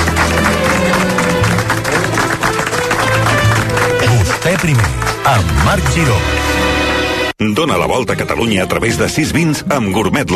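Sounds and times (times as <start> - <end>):
people cheering: 0.0 - 6.2
audience applause: 0.0 - 6.7
speech: 4.4 - 6.6, 7.4 - 10.3.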